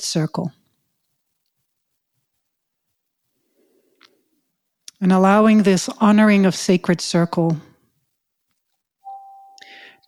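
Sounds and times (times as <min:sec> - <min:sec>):
speech: 0:00.0 - 0:00.6, 0:05.0 - 0:07.7
small ritual bell ringing: 0:09.1 - 0:09.9.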